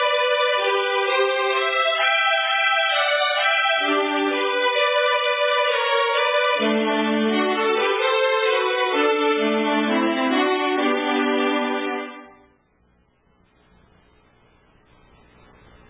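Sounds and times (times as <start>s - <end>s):
waltz music: 0.0s - 12.5s.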